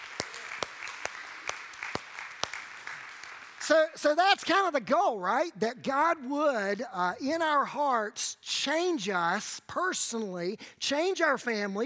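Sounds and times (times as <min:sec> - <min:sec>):
audience applause: 0:00.0 - 0:03.9
speech: 0:03.7 - 0:11.8.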